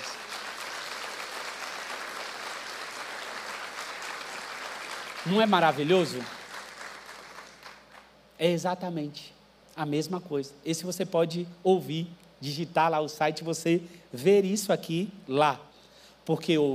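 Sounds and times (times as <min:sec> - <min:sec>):
audience applauding: 0:00.0 - 0:08.1
speech: 0:05.2 - 0:06.4, 0:08.4 - 0:16.7.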